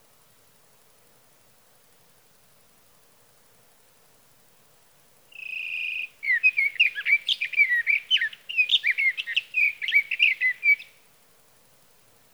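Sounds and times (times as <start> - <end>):
sage thrasher singing: 5.4 - 10.9.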